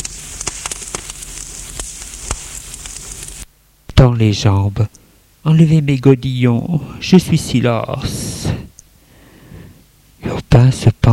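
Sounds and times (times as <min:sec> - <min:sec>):
wood fire crackling in a fireplace: 0:00.0 - 0:09.0
speech: 0:04.0 - 0:08.6, 0:10.5 - 0:11.1.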